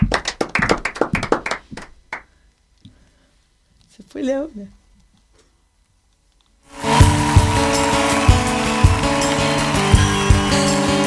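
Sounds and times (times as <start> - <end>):
small group clapping: 0.0 - 2.3, 6.7 - 11.0
speech: 4.2 - 4.8.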